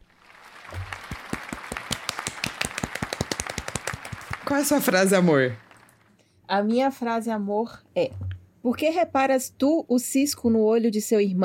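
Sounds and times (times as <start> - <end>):
hand clapping: 0.2 - 6.1
speech: 4.5 - 5.6, 6.5 - 11.4.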